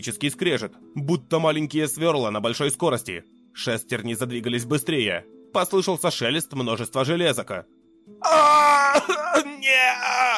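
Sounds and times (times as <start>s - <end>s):
speech: 0.0s - 10.3s
agonized scream of pain: 8.2s - 10.3s.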